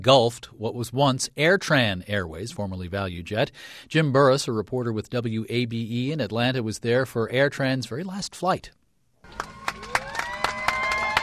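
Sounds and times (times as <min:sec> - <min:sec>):
speech: 0:00.0 - 0:09.6
crowd clapping as AirTran's last Boeing 717 takes off from Hartsfield-Jackson: 0:09.2 - 0:11.2.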